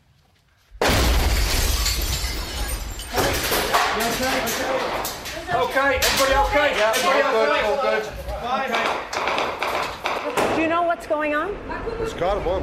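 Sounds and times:
debris crackling: 0.7 - 7.7
car bomb explosion: 0.8 - 2.8
glass shattering: 0.8 - 7.2
speech: 4.1 - 9.3, 10.6 - 12.6.

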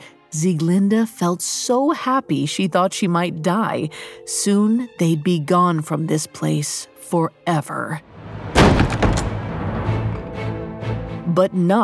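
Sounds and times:
speech: 0.3 - 8.2, 11.4 - 11.8
door slamming open: 8.2 - 10.3.

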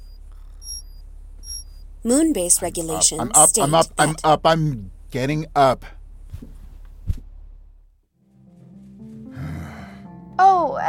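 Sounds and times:
alarm going off: 0.0 - 4.3
speech: 2.0 - 6.0.

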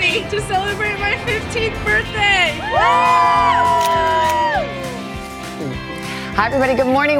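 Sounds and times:
speech: 0.1 - 3.8, 6.4 - 7.1
crowd cheering: 1.3 - 5.3.

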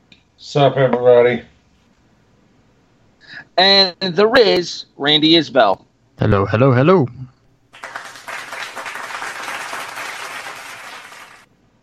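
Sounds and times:
speech: 0.4 - 1.5, 3.6 - 7.3
applause: 7.8 - 11.5.

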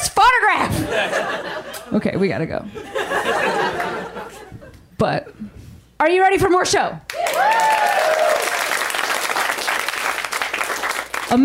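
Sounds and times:
laughter: 0.7 - 2.0, 2.7 - 4.8
speech: 1.9 - 2.9, 5.0 - 5.4, 6.0 - 8.0
audience applause: 7.1 - 11.3.

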